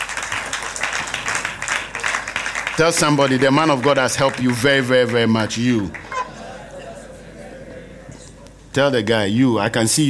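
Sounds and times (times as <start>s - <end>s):
audience clapping hands: 0.0s - 6.3s
speech: 2.8s - 6.0s, 8.7s - 10.0s
laughter: 5.7s - 8.4s.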